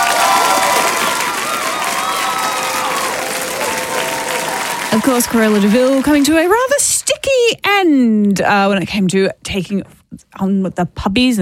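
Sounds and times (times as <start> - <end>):
cheering voices: 0.0 - 6.8
applause: 0.0 - 7.0
speech: 4.9 - 6.9, 7.5 - 11.3.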